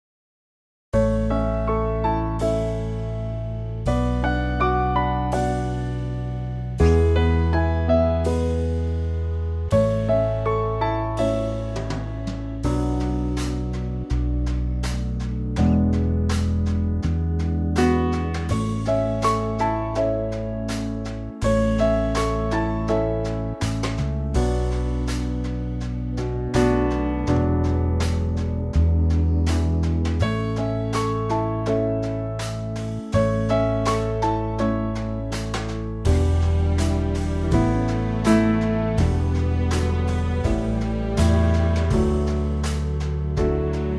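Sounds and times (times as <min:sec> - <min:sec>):
backing track for male vocals: 0:01.0 - 0:43.9.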